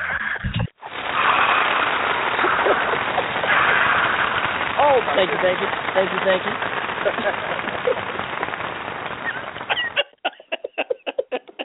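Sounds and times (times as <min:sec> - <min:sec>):
canned applause sound effect: 0:00.9 - 0:11.6
laughter: 0:02.3 - 0:04.0, 0:05.1 - 0:08.5, 0:09.2 - 0:11.6
speech: 0:05.2 - 0:08.1.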